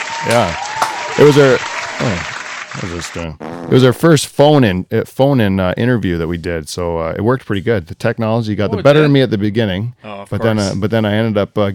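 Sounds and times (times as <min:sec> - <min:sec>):
higher-pitched cheers or whoops: 0:00.0 - 0:02.9
audience applause: 0:00.0 - 0:03.3
speech: 0:00.2 - 0:00.6, 0:01.2 - 0:11.7.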